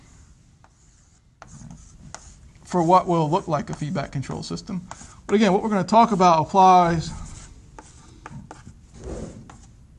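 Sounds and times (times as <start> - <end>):
drawing a block diagram on a board with scratchy rubbing strokes: 0.1 - 9.7
speech: 2.7 - 7.2.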